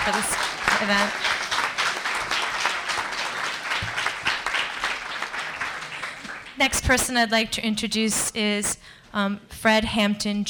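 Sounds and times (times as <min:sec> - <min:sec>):
speech: 0:00.0 - 0:01.4, 0:06.6 - 0:10.4
audience applause: 0:00.0 - 0:06.6.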